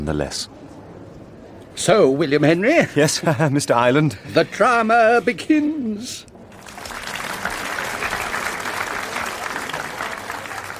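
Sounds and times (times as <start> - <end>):
speech: 0.0 - 0.6, 1.8 - 6.3
theatre audience applause: 6.4 - 10.7.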